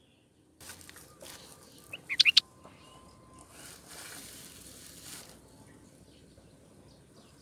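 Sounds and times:
Sooty-headed bulbul bubbly chirping: 2.0 - 2.4.

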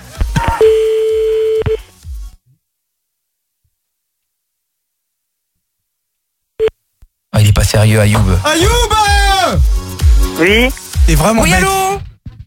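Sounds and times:
remixed telephone ringing tone electronic beep: 0.6 - 1.8
low thumping beats: 7.4 - 12.1
speech: 7.8 - 9.8, 10.4 - 11.8.

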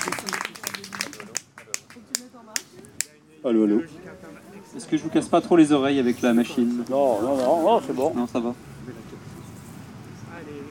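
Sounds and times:
scattered claps from an audience at a French stage performance: 0.0 - 3.2
speech: 3.4 - 4.1, 4.7 - 9.0.

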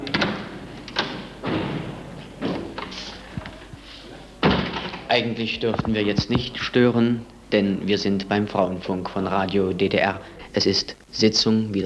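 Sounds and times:
door opening in the Funkhaus of Sender Leipzig: 0.0 - 6.5
speech: 5.1 - 11.8.

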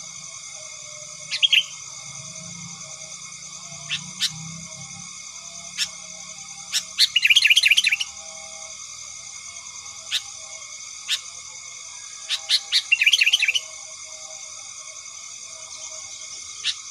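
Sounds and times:
Sooty-headed bulbul chattering: 1.2 - 2.0, 3.6 - 4.8, 5.6 - 8.1, 12.2 - 13.7.

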